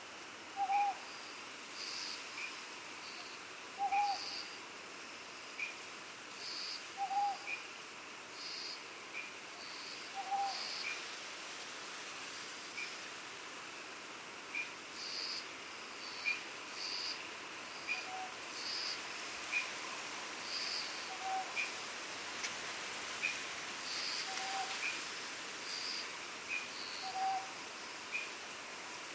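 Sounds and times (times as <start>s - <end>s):
insects buzzing: 0.0s - 29.1s
steady hiss: 0.0s - 29.1s
owl hooting: 0.5s - 1.1s, 3.8s - 4.4s, 7.0s - 7.6s, 10.1s - 11.0s, 17.9s - 19.0s, 21.0s - 21.7s, 24.0s - 24.9s, 25.7s - 28.2s.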